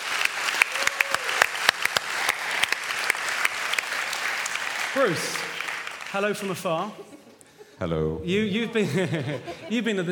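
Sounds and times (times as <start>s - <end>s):
audience applause: 0.0s - 6.9s
speech: 5.0s - 5.5s, 6.1s - 7.2s, 7.8s - 10.1s
laughter: 6.7s - 10.1s.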